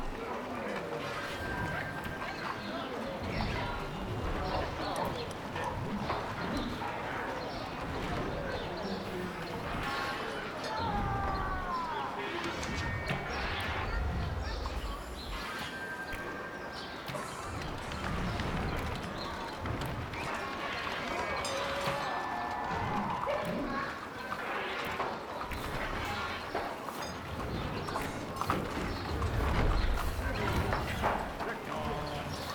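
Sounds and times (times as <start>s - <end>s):
courtyard ambience: 0.0s - 32.5s.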